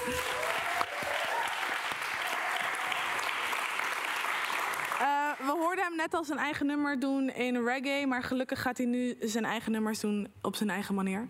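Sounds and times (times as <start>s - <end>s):
audience applause: 0.0s - 5.6s
speech: 0.1s - 0.3s, 5.8s - 11.2s.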